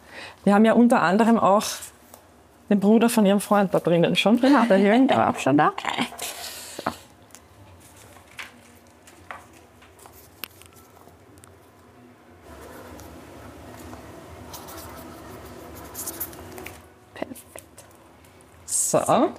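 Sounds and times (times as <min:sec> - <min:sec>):
speech: 0:00.4 - 0:01.9, 0:02.7 - 0:06.2, 0:19.0 - 0:19.3
pen writing an entry on paper: 0:14.4 - 0:16.5.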